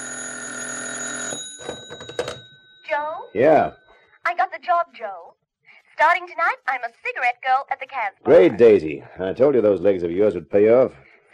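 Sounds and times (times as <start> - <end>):
telephone bell ringing: 0.0 - 4.1
speech: 3.3 - 5.4, 6.0 - 11.3.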